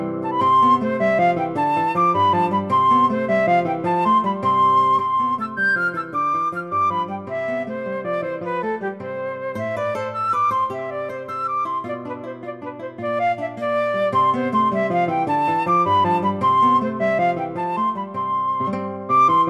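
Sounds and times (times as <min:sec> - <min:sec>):
flute playing a folk song: 0:00.2 - 0:19.4.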